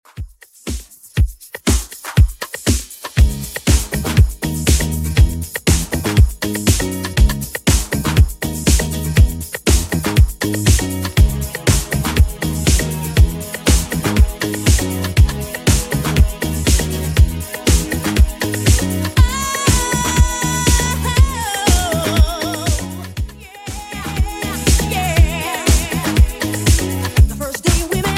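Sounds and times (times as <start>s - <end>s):
90s-style beat at 120 bpm: 0.0s - 28.1s.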